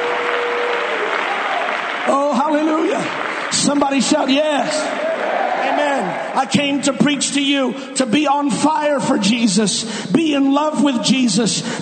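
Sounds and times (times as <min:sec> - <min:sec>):
audience clapping hands: 0:00.0 - 0:06.5
speech: 0:02.1 - 0:11.8.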